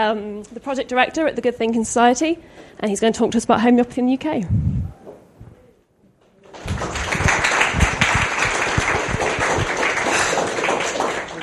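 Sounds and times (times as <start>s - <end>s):
speech: 0.0s - 4.7s
audience clapping to welcome a speaker at a talk on homeopathy in the UK: 6.4s - 11.4s.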